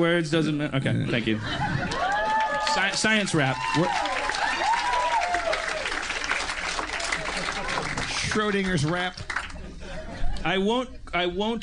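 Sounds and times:
speech: 0:00.0 - 0:01.8, 0:02.8 - 0:04.1, 0:08.4 - 0:09.3, 0:10.4 - 0:11.6
laughter: 0:01.1 - 0:02.6, 0:07.0 - 0:08.4, 0:09.4 - 0:10.6
audience applause: 0:01.8 - 0:09.6
cheers and whistles: 0:03.5 - 0:06.0.

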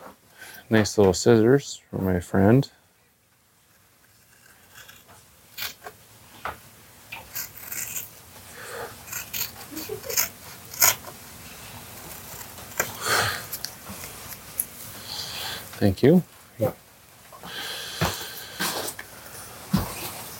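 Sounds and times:
speech: 0:00.7 - 0:02.8, 0:15.8 - 0:16.8
tape being wrapped around a hockey stick: 0:03.6 - 0:15.8.

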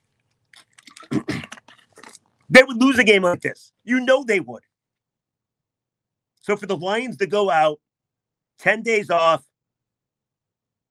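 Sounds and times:
swig of water being drunk: 0:00.0 - 0:02.5
speech: 0:02.5 - 0:04.7, 0:06.4 - 0:07.8, 0:08.6 - 0:09.5.

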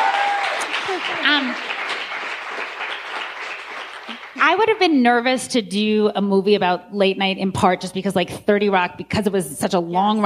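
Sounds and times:
person whooping: 0:00.0 - 0:01.2
audience applause: 0:00.0 - 0:04.4
speech: 0:01.0 - 0:01.7, 0:04.4 - 0:10.2.

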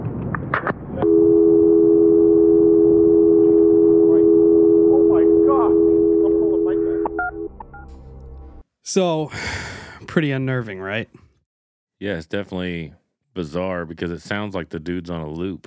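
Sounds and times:
short beeps: 0:01.0 - 0:07.9
telephone line tone after the caller hangs up: 0:01.0 - 0:07.9
speech: 0:08.9 - 0:11.2, 0:12.0 - 0:15.6.

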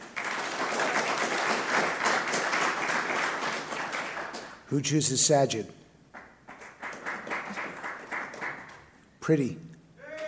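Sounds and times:
audience applause: 0:00.0 - 0:04.6, 0:06.2 - 0:08.8
speech: 0:04.7 - 0:05.8, 0:09.3 - 0:09.7.

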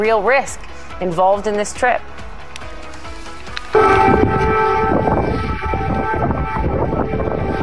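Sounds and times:
speech: 0:00.0 - 0:02.3
air raid siren wailing: 0:03.7 - 0:07.6
rumbling noise: 0:03.8 - 0:07.6.

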